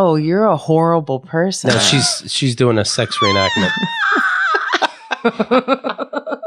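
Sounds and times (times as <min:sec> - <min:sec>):
speech: 0:00.1 - 0:04.3, 0:05.3 - 0:06.0
voice imitating a dolphin with squeaks, inhaled gasps and groaning: 0:01.7 - 0:04.3
laughter: 0:01.7 - 0:06.4.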